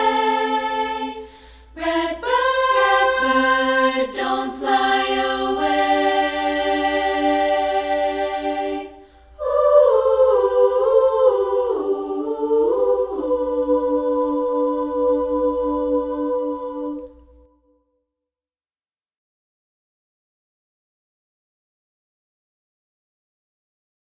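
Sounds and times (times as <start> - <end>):
a cappella singing: 0.0 - 17.6.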